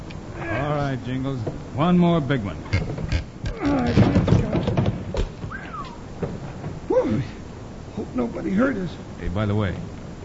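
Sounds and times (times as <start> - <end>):
speech: 0.9 - 2.9, 8.2 - 9.9
wooden trap door being pried up: 2.7 - 5.5.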